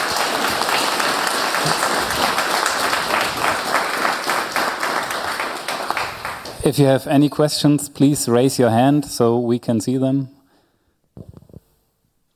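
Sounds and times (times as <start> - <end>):
audience applause for a presenter at a technical talk: 0.0 - 6.8
speech: 6.6 - 10.4.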